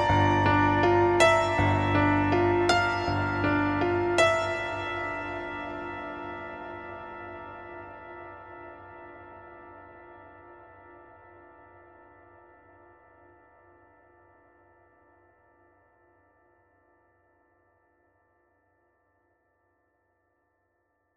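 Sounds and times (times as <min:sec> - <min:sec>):
acoustic music: 0:00.0 - 0:06.7.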